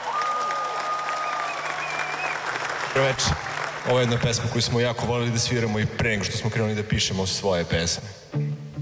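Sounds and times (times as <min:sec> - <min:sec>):
audience applause at a tribute concert: 0:00.0 - 0:04.8
speech: 0:03.0 - 0:08.5.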